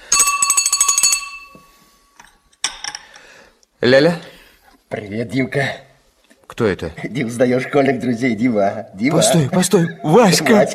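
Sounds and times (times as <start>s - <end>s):
telephone bell ringing: 0.0s - 2.1s
speech: 3.8s - 4.3s, 4.9s - 5.8s, 6.5s - 10.7s.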